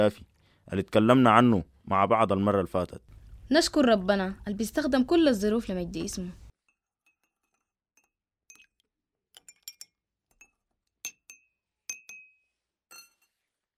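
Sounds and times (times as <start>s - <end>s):
speech: 0.0s - 6.4s
small tea glasses clinking against each other and a tray: 6.7s - 8.8s, 9.4s - 13.5s.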